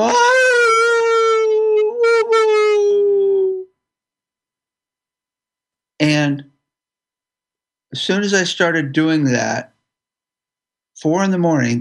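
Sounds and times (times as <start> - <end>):
speech: 0.0 - 0.2, 7.9 - 9.7, 11.0 - 11.7
person wailing: 0.0 - 3.7.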